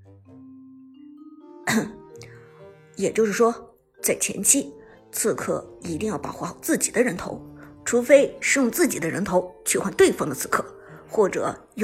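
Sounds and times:
speech: 0:01.7 - 0:02.0, 0:03.0 - 0:11.8
person coughing: 0:01.7 - 0:02.1.

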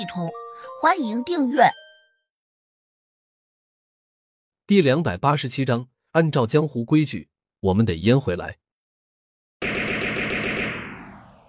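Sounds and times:
speech: 0:00.0 - 0:01.8, 0:04.7 - 0:08.6
machine gun burst of rapid shots striking the ground: 0:09.6 - 0:11.4.

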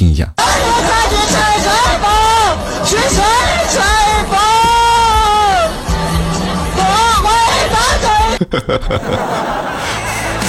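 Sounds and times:
fan singing along: 0:00.4 - 0:08.4
laughter: 0:00.4 - 0:10.4
noisy concert crowd: 0:00.4 - 0:10.4
speech: 0:08.4 - 0:10.0.

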